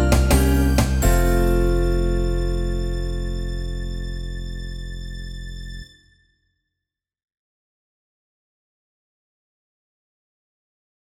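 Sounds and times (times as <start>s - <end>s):
game end sound: 0.0s - 4.4s.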